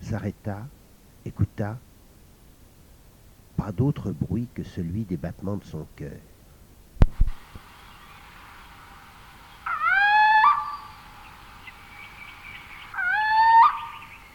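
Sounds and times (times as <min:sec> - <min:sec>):
speech: 0:00.1 - 0:01.9, 0:03.6 - 0:06.3
owl hooting: 0:07.6 - 0:14.3.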